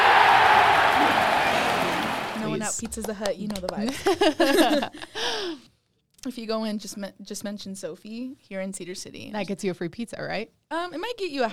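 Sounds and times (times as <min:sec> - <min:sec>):
audience applause: 0:00.0 - 0:02.9
speech: 0:02.8 - 0:11.5.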